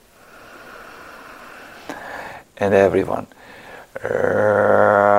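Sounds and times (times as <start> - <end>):
deep inhale: 0.0 - 2.6, 3.3 - 4.0
speech: 2.6 - 5.0.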